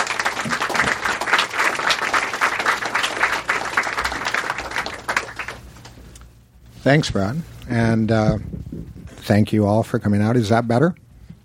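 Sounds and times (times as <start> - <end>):
audience applauding a speaker at a talk: 0.0 - 6.0
speech: 6.8 - 8.6, 9.2 - 11.0.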